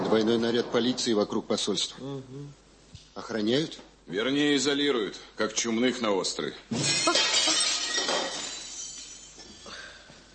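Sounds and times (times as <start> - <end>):
speech: 0.1 - 2.6, 3.2 - 7.5
window glass being smashed: 6.7 - 9.5.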